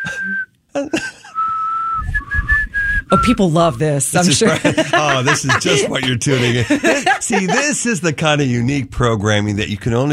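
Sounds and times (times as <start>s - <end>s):
person whistling held high notes: 0.0s - 0.5s, 1.3s - 3.4s
speech: 0.2s - 1.1s, 3.1s - 10.1s
laughter: 0.8s - 1.4s, 4.2s - 8.4s.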